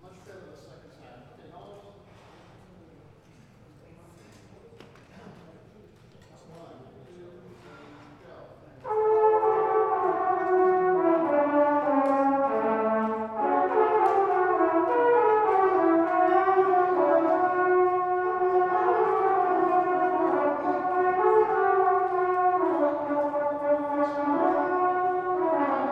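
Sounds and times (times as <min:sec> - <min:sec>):
brass band playing a parade tune: 0:08.8 - 0:25.9.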